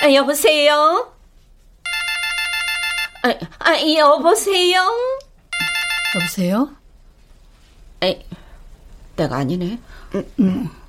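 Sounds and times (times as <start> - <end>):
speech: 0.0 - 1.2, 3.2 - 5.2, 6.1 - 6.8, 8.0 - 8.4, 9.2 - 10.8
phone ringtone with bright repeating electronic melody: 1.9 - 3.3, 5.6 - 6.4.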